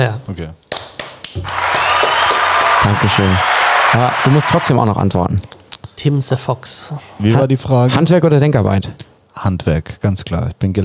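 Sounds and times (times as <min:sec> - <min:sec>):
speech: 0:00.0 - 0:00.6, 0:01.3 - 0:01.6, 0:02.8 - 0:10.8
rhythmic hand clapping: 0:00.7 - 0:04.8.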